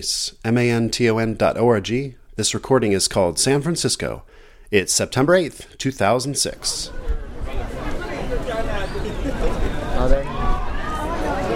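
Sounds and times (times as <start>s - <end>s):
speech: 0.0s - 7.3s
crowd of people on Pier 39 off Fisherman's Wharf: 6.0s - 11.5s.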